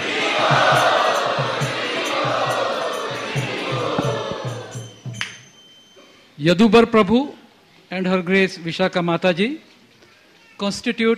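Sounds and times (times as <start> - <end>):
crowd chanting loudly to welcome a guest at a Hare Krishna Sunday feast program: 0.0 - 5.1
low rhythmic pulses: 0.0 - 6.0
speech: 6.4 - 9.7, 10.6 - 11.1.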